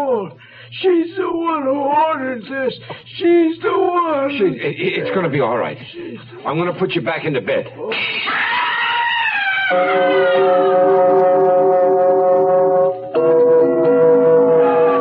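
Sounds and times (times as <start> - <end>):
speech: 0.2 - 8.6, 9.7 - 10.9
ambulance siren wailing: 8.7 - 15.0.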